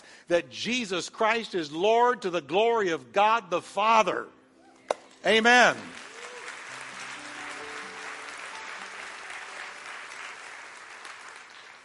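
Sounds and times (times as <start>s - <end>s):
speech: 0.3s - 4.4s, 5.2s - 6.0s
audience hand clapping: 5.2s - 11.8s.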